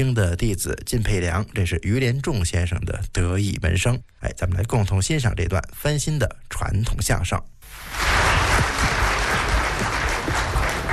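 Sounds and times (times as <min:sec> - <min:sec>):
speech: 0:00.0 - 0:08.1
audience applause: 0:07.7 - 0:10.9.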